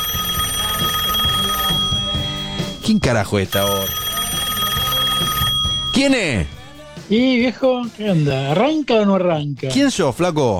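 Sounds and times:
phone ringing in a studio during a live show: 0.0 - 6.8
speech: 2.9 - 4.0, 6.0 - 10.5.

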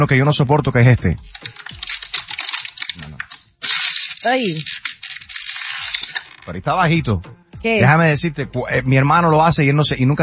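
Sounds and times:
speech: 0.0 - 1.6, 4.2 - 4.8, 6.4 - 10.2
plastic water bottle being crushed: 1.3 - 6.3.

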